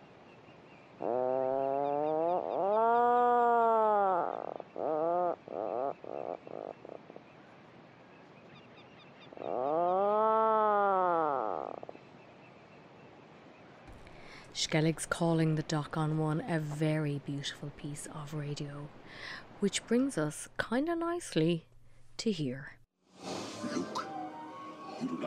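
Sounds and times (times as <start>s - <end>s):
burrow-nesting birds calling from within their burrows with deep rolling droning: 0.0s - 13.7s
speech: 14.6s - 22.8s.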